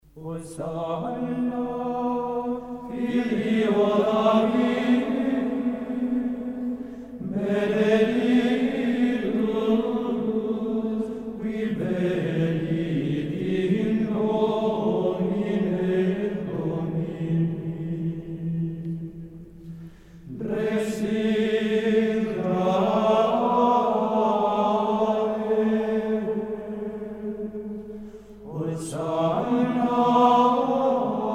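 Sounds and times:
Benedictine monks chanting an antiphon in mode 7: 0.2s - 18.8s, 20.3s - 27.8s, 28.4s - 31.3s.

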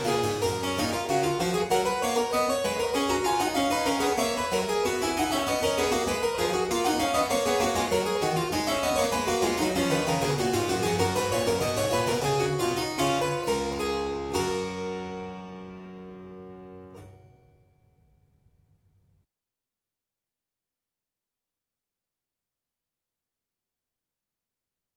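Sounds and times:
harpsichord piece in G: 0.0s - 17.3s.

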